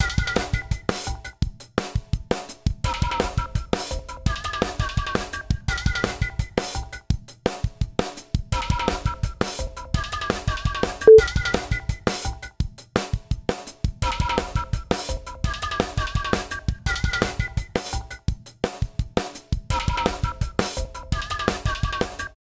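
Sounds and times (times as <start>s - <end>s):
drums and percussion: 0.0s - 22.4s.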